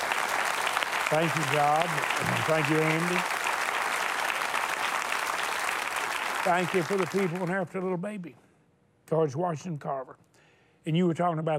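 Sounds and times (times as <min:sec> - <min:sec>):
audience applause: 0:00.0 - 0:07.7
speech: 0:01.1 - 0:03.4, 0:06.4 - 0:08.4, 0:09.1 - 0:11.5.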